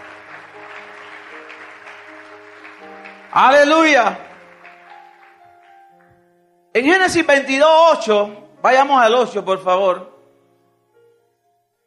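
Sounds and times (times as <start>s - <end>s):
crowd applause: 0.0s - 6.1s
speech: 3.4s - 4.3s, 6.8s - 10.1s.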